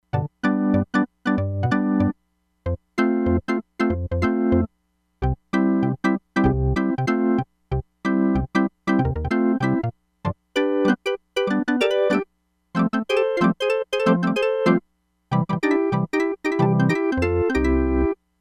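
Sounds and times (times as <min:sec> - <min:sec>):
organ: 0:00.1 - 0:02.1, 0:03.0 - 0:09.9, 0:10.6 - 0:12.2, 0:12.8 - 0:18.2.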